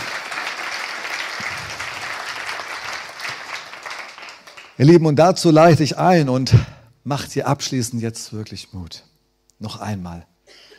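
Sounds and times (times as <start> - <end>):
audience applauding: 0.0 - 4.9
speech: 4.8 - 10.6.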